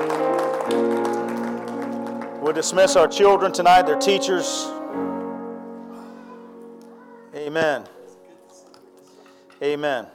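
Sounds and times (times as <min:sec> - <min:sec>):
audience clapping: 0:00.0 - 0:03.4, 0:07.8 - 0:09.7
sustained organ chords: 0:00.0 - 0:09.1
speech: 0:02.5 - 0:05.1, 0:07.6 - 0:08.0, 0:09.6 - 0:10.1.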